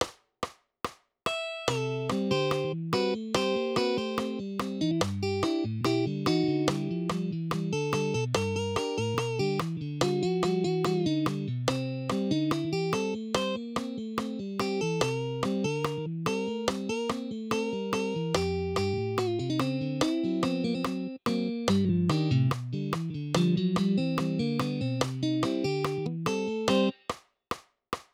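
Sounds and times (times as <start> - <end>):
guitar solo: 1.4 - 26.9.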